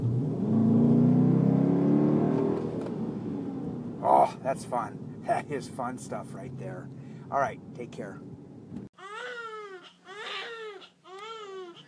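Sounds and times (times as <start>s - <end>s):
V8 engine revving: 0.0s - 7.1s
speech: 4.4s - 8.8s.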